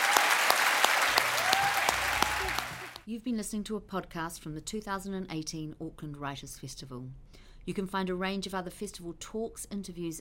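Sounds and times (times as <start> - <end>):
audience applause: 0.0 - 3.0
speech: 3.1 - 10.2.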